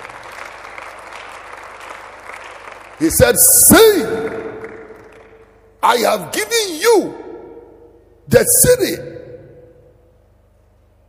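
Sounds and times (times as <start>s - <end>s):
audience clapping: 0.0s - 5.7s
faint low hum: 0.0s - 11.0s
speech: 3.0s - 4.5s, 5.8s - 7.2s, 8.3s - 9.1s.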